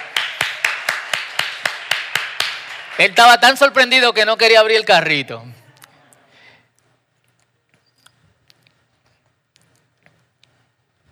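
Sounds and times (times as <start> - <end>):
crowd applause: 0.0 - 4.0
speech: 3.0 - 5.6.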